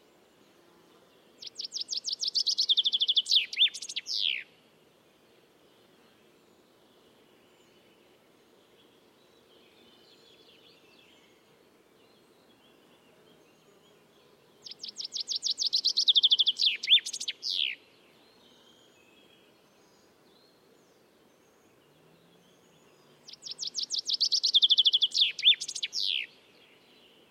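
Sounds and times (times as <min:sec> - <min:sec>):
common chaffinch Fringilla coelebs singing: 0:01.4 - 0:04.5, 0:14.6 - 0:19.2, 0:21.7 - 0:27.2.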